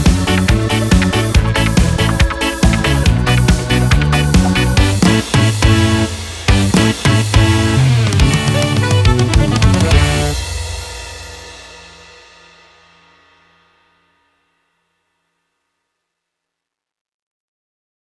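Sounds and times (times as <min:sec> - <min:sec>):
Yamaha keyboard accompaniment style: 0:00.0 - 0:10.8.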